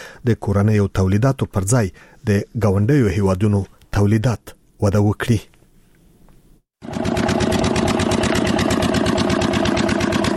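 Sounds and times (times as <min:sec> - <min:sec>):
speech: 0:00.2 - 0:05.5
generator supplying electricity to a pipe-making factory in a Kandahar industrial park: 0:06.8 - 0:10.3.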